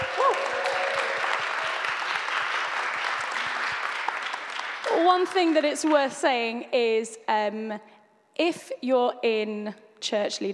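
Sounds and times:
audience cheering and applauding: 0.0s - 5.4s
speech: 5.1s - 10.5s.

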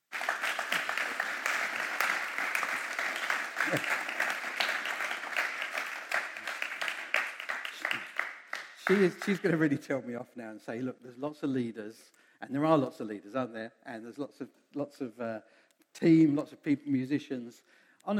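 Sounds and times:
audience applause: 0.0s - 9.3s
speech: 3.7s - 4.0s, 8.9s - 18.1s.

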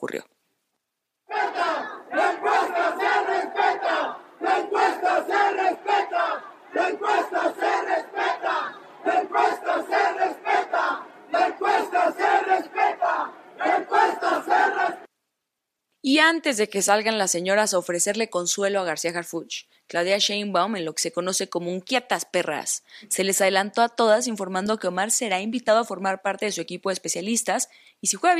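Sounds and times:
speech: 0.1s - 0.3s, 16.1s - 28.3s
crowd of protesters chanting: 1.3s - 15.1s.

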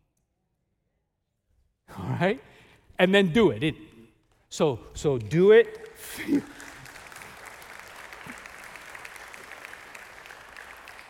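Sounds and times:
speech: 1.9s - 3.9s, 4.5s - 6.6s
people clapping: 4.2s - 11.0s.

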